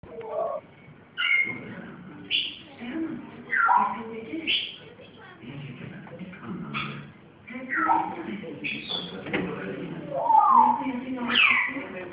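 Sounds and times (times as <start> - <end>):
pet grey parrot whistling: 0.2 - 0.6, 1.2 - 1.6, 3.5 - 4.8, 7.6 - 9.1, 10.1 - 11.8.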